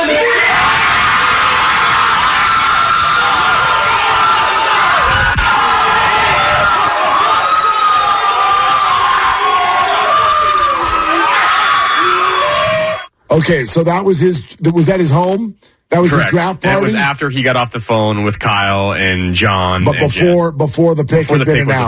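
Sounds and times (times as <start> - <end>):
family cheering at draft party: 0.0 - 13.1
overlapping shouts and whoops: 0.0 - 13.1
speech: 13.4 - 21.8.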